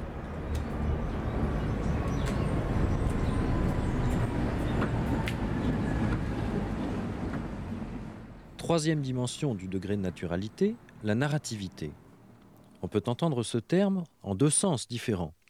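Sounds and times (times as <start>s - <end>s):
Ficelle rack railway train rumbling in Lausanne: 0.0s - 11.0s
speech: 8.7s - 12.0s, 12.8s - 15.4s.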